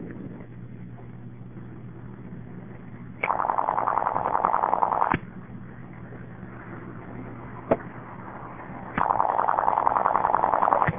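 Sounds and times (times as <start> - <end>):
telephone ringing: 3.3 - 5.1, 9.0 - 10.9.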